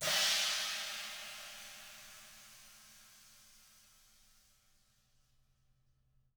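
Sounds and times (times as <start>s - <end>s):
ride cymbal swish: 0.0s - 3.8s.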